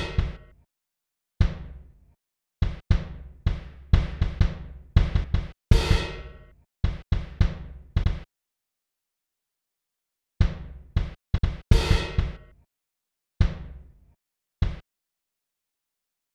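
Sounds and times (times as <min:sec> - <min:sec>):
lounge kick drums: 0:00.0 - 0:00.5, 0:01.4 - 0:01.8, 0:02.6 - 0:08.3, 0:10.4 - 0:12.5, 0:13.4 - 0:13.8, 0:14.6 - 0:14.8.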